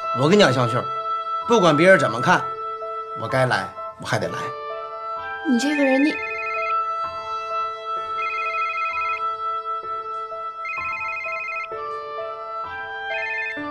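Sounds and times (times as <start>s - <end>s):
speech: 0.2s - 2.5s, 3.2s - 4.6s, 5.4s - 6.3s
phone ringing with a melodic electronic ringtone: 5.5s - 7.2s, 8.0s - 9.4s, 10.6s - 11.8s, 13.0s - 13.6s.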